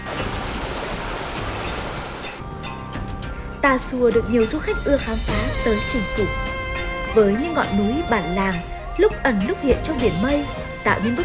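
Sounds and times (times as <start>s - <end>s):
mountain stream flowing over rocks: 0.0s - 2.4s
speech: 3.6s - 6.5s, 7.1s - 11.2s.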